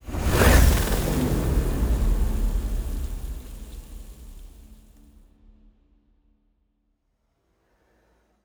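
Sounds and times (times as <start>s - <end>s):
destroyer ship moving: 0.0s - 5.1s.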